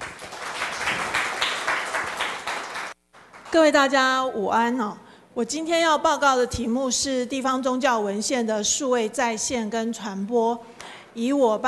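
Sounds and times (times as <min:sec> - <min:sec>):
room full of people clapping: 0:00.0 - 0:03.6
speech: 0:03.5 - 0:11.6.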